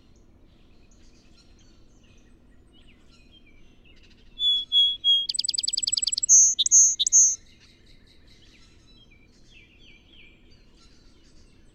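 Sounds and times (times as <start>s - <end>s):
song sparrow whistles and chattering trill: 4.4s - 7.4s.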